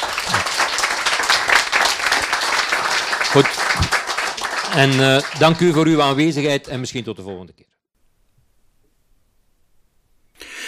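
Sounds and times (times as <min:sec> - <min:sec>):
audience applause: 0:00.0 - 0:06.4
speech: 0:03.3 - 0:04.0, 0:04.7 - 0:07.7.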